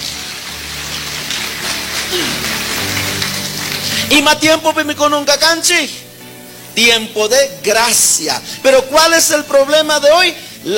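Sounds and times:
audience applauding: 0.0s - 4.4s
speech: 4.1s - 6.0s, 6.8s - 10.7s.

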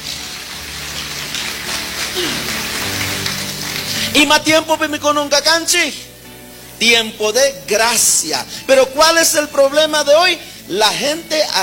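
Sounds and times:
applause: 0.0s - 4.5s
speech: 4.2s - 6.1s, 6.8s - 11.6s.

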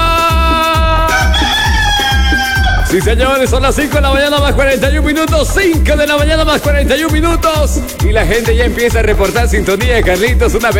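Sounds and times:
rooster crowing: 0.7s - 3.0s
speech: 2.9s - 10.7s.

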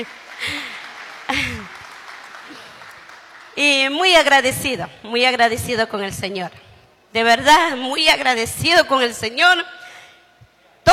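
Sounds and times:
speech: 0.0s - 0.7s, 3.6s - 9.8s
audience applauding: 0.0s - 3.9s.

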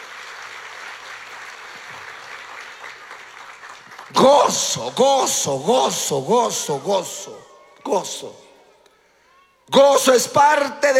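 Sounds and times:
applause: 0.0s - 5.3s
speech: 4.1s - 8.4s, 9.7s - 10.9s.

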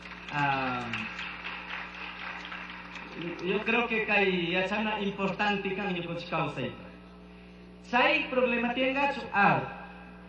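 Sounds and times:
applause: 0.0s - 4.2s
speech: 3.4s - 6.8s, 7.9s - 9.8s.

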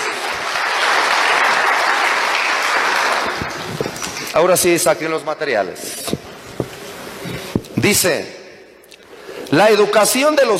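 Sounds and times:
audience applause: 0.0s - 4.3s
speech: 4.4s - 6.0s, 7.8s - 8.4s, 9.5s - 10.5s.

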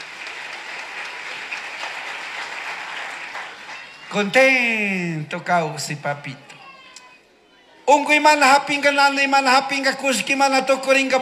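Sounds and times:
crowd applause: 0.0s - 4.4s
speech: 4.1s - 6.5s, 7.9s - 11.2s.

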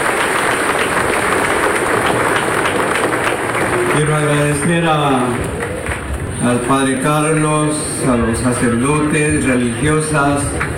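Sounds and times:
large crowd applause: 0.0s - 7.8s, 10.3s - 10.7s
speech: 4.0s - 5.6s, 6.4s - 10.6s.

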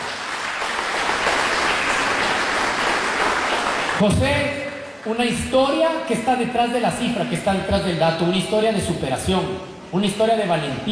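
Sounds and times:
audience applause: 0.0s - 4.1s
speech: 4.0s - 10.9s.

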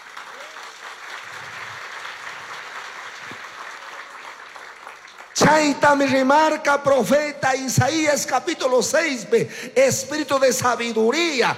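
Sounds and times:
audience applause: 0.0s - 5.5s
speech: 5.4s - 11.5s.

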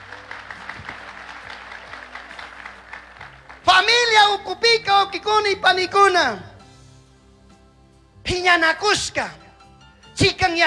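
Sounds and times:
audience applauding: 0.0s - 3.8s
speech: 3.7s - 6.5s, 8.3s - 9.4s, 10.2s - 10.6s.

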